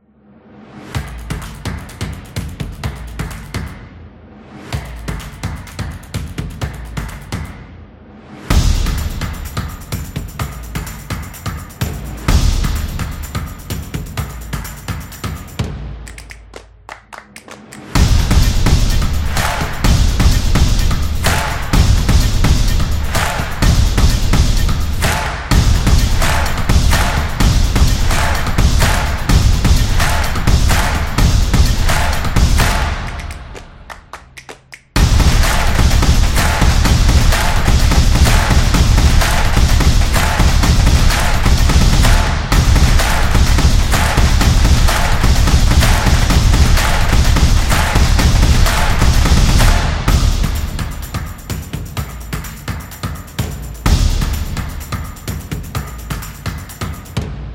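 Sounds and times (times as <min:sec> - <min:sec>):
drum beat: 0:01.0 - 0:03.7, 0:04.8 - 0:07.5, 0:08.5 - 0:16.5, 0:17.2 - 0:57.5.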